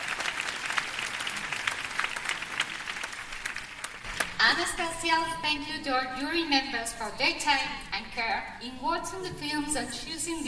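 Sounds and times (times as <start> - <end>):
audience applauding: 0.0 - 4.4
speech: 4.4 - 10.4.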